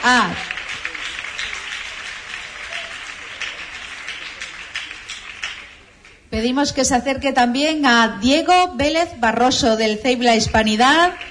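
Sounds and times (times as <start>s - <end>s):
speech: 0.0s - 0.5s, 6.3s - 11.2s
audience applause: 0.0s - 6.2s, 10.9s - 11.2s.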